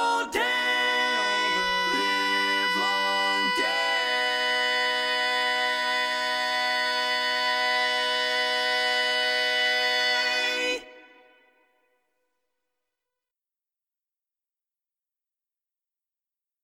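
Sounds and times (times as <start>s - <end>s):
tenor singing: 0.0s - 11.5s.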